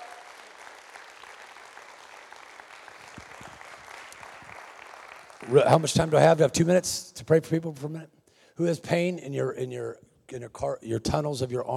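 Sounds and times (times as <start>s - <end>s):
audience applause and cheering: 0.0s - 6.2s
speech: 5.4s - 11.7s.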